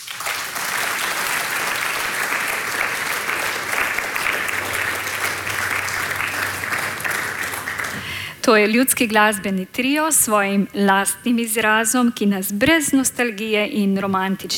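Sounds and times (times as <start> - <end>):
audience applause: 0.0 - 8.4
speech: 8.5 - 14.5.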